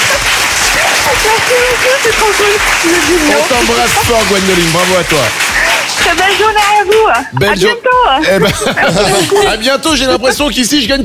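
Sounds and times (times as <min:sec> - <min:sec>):
laughter: 0:00.0 - 0:06.1, 0:07.1 - 0:11.0
audience applause: 0:00.0 - 0:07.5
speech: 0:01.2 - 0:11.0.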